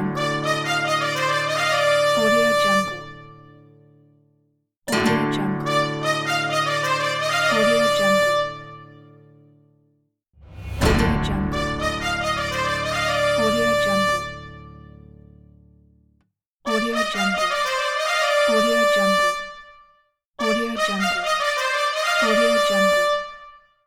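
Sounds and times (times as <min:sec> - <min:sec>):
Spanish ole trumpet playing: 0:00.2 - 0:03.3, 0:05.6 - 0:09.0, 0:10.8 - 0:15.1, 0:16.7 - 0:19.7, 0:20.4 - 0:23.6.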